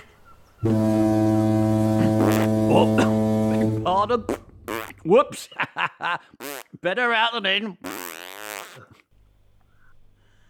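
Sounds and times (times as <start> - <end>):
speech: 0.6 - 0.9, 4.0 - 4.4, 5.1 - 8.0
man farting among coffee drinkers: 1.9 - 5.1, 6.3 - 6.8, 7.8 - 9.1.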